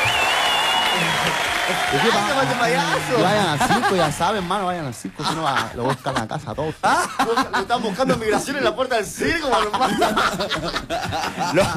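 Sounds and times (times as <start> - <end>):
live audience of young men clapping: 0.0 - 5.7
laughter: 0.9 - 11.7
speech: 1.7 - 11.7.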